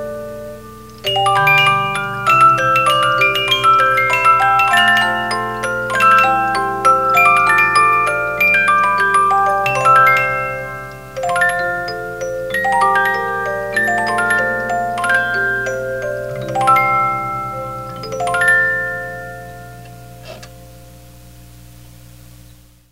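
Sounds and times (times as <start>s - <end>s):
50-note music box playing a choral work: 0.0s - 21.0s.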